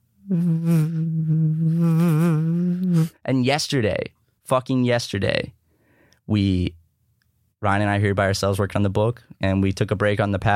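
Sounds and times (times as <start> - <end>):
person imitating a fly buzzing: 0.2 - 3.2
speech: 0.3 - 1.3, 3.3 - 5.6, 6.3 - 6.8, 7.6 - 10.5.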